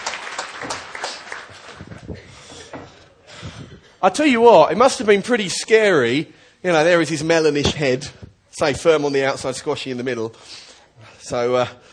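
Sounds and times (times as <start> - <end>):
audience clapping: 0.0 - 2.4
speech: 4.0 - 10.7, 11.3 - 11.9.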